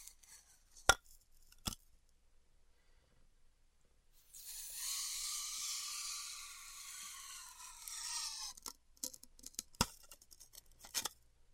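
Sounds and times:
heated wire cutting styrofoam: 4.3 - 11.1.

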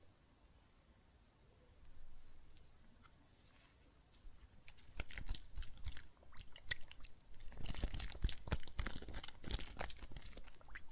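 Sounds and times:
soapy water and foam crackling and squishing: 4.6 - 10.9.

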